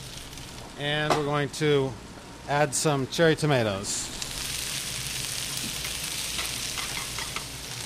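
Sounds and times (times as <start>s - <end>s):
kale and arugula frying in a pan with garlic and oil: 0.0s - 0.7s, 4.1s - 7.8s
speech: 0.8s - 4.2s.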